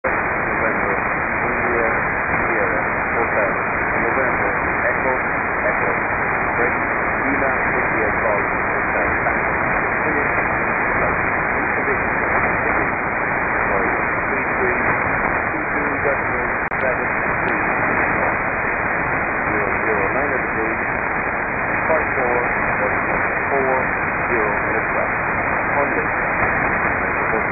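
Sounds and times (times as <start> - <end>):
Valentia Coastguard Radio Ireland transmission: 0.0 - 27.5.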